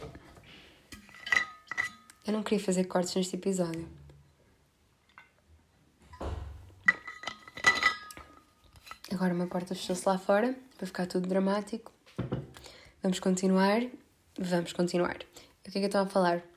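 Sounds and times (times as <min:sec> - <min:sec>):
glass clinking while getting water to drink: 0:00.9 - 0:02.1, 0:06.1 - 0:08.9
speech: 0:02.3 - 0:04.0, 0:09.2 - 0:12.0, 0:13.0 - 0:16.5.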